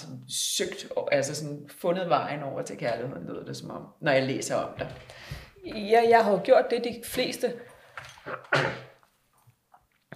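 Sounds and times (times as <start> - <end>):
speech: 0.3 - 8.8
person coughing: 8.3 - 9.0.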